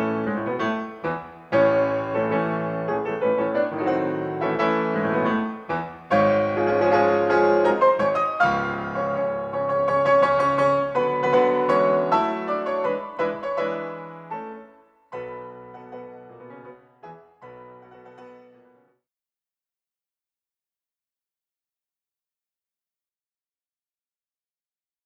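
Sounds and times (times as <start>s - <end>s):
grand piano playing classical music: 0.0s - 19.0s.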